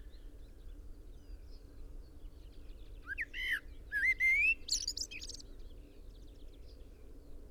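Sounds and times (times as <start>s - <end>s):
common blackbird singing: 3.1s - 5.5s.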